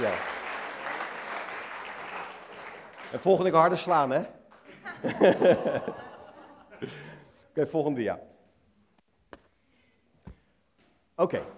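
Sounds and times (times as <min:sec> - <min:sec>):
audience applause: 0:00.0 - 0:03.9
speech: 0:03.1 - 0:04.4, 0:05.0 - 0:06.0, 0:06.8 - 0:07.0, 0:07.6 - 0:08.3, 0:11.2 - 0:11.5
laughter: 0:04.6 - 0:07.4.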